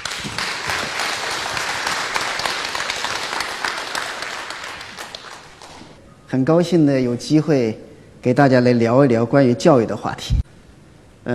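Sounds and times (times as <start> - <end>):
audience applause: 0.0 - 6.0
speech: 6.3 - 10.4.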